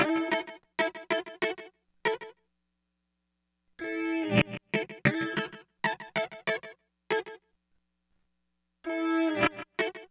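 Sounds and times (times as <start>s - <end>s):
guitar: 0.0s - 2.4s, 3.8s - 7.4s, 8.9s - 10.0s.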